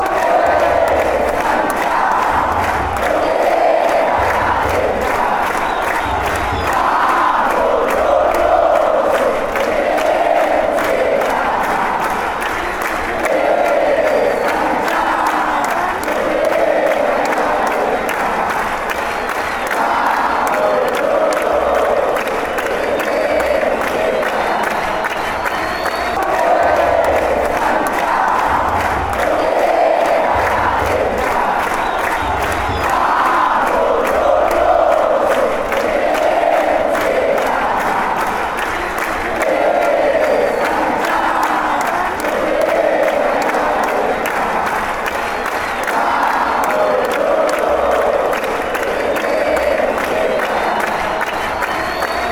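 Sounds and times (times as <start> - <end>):
football fans chanting: 0.0 - 52.3.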